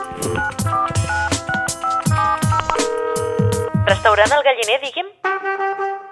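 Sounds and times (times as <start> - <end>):
telephone number being dialed: 0.2 - 1.2, 1.9 - 4.4
speech: 4.0 - 5.9.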